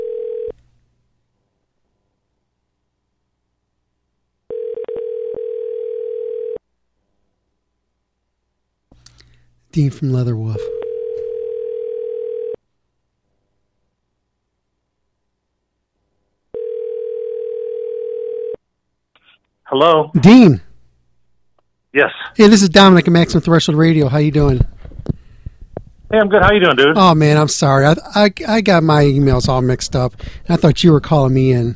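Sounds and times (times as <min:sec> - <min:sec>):
telephone dial tone: 0:00.0 - 0:00.6, 0:04.5 - 0:06.6, 0:10.7 - 0:12.6, 0:16.5 - 0:18.6
speech: 0:09.8 - 0:10.8, 0:19.7 - 0:20.7, 0:22.0 - 0:24.7, 0:26.1 - 0:31.7.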